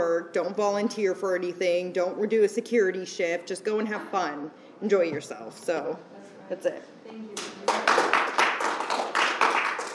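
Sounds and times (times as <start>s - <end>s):
speech: 0.2s - 7.8s
audience applause for panelists: 7.6s - 9.9s.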